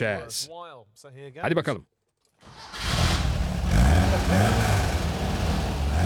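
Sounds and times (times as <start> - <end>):
speech: 0.0 - 2.8, 4.1 - 4.7
repaired engine starting and running: 2.4 - 6.0.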